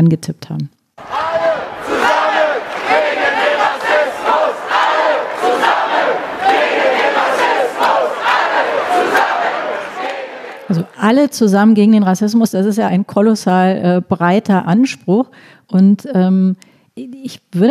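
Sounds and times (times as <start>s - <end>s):
speech: 0.0s - 1.2s, 11.0s - 17.6s
crowd chanting at a demonstration against racism: 1.0s - 11.0s.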